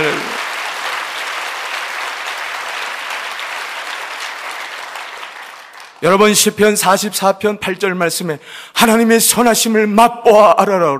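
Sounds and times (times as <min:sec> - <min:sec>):
audience applause: 0:00.0 - 0:06.1
speech: 0:06.0 - 0:10.9.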